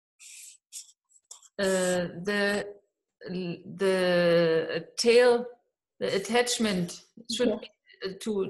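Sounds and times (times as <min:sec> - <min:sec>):
pencil drawing strokes on paper: 0:00.2 - 0:02.0
speech: 0:01.6 - 0:08.4.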